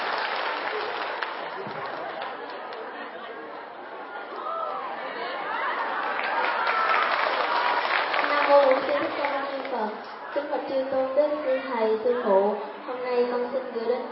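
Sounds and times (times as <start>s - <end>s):
audience clapping to welcome a child singer at a Buddhist monastery ceremony: 0.0s - 3.7s, 5.8s - 10.1s
crowd chatter: 0.0s - 14.1s.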